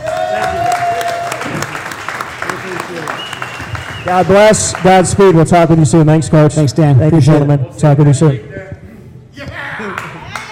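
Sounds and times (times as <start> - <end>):
audience applause: 0.0 - 4.9
speech: 4.1 - 8.6.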